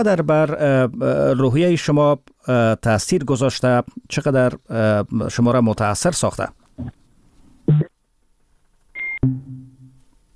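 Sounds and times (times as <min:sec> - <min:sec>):
speech: 0:00.0 - 0:07.0
phone call cutting off beep: 0:09.0 - 0:10.0.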